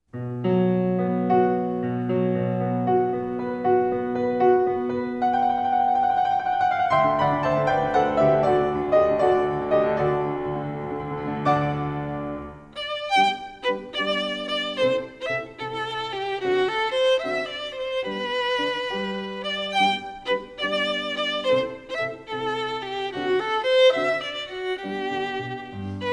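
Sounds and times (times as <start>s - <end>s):
violin concerto: 1.1s - 26.1s.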